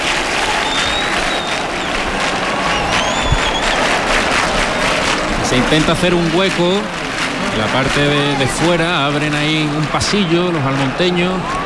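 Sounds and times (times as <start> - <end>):
large crowd applauding outdoors: 0.0 - 11.6
murmur of voices: 0.0 - 11.6
faint whistles: 0.5 - 1.9, 2.7 - 3.8
speech: 5.6 - 7.0, 7.6 - 11.6.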